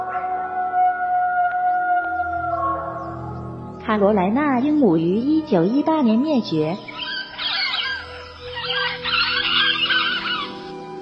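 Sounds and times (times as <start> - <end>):
Falkland Islands wolf howling: 0.0 - 3.2, 6.8 - 10.8
speech: 3.9 - 7.1.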